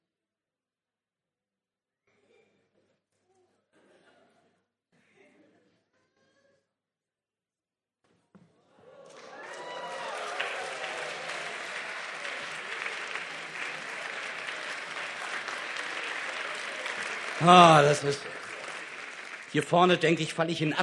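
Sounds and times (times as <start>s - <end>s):
crowd applause: 8.7s - 20.8s
speech: 17.5s - 18.4s, 19.5s - 20.8s.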